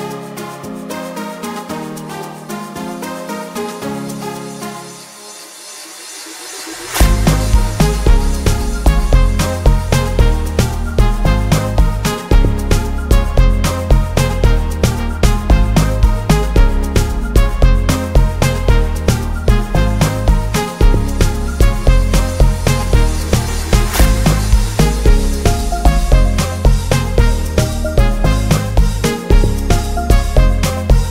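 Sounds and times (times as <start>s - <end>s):
808 bass hard kick drum: 7.0s - 31.0s.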